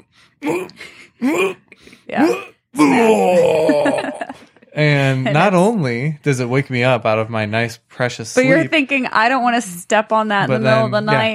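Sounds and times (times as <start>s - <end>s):
voice imitating a cat retching up a hairball: 0.4s - 1.6s, 2.2s - 5.0s
laughter: 3.0s - 5.7s
speech: 5.4s - 11.3s.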